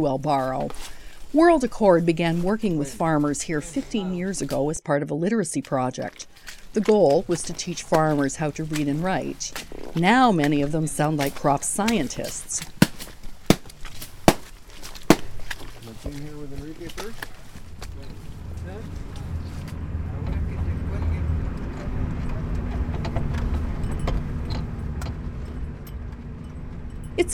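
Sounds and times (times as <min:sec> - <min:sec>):
speech: 0:00.0 - 0:12.8, 0:16.0 - 0:17.4, 0:27.2 - 0:27.3
van driving on bumpy mountain road: 0:06.4 - 0:27.3.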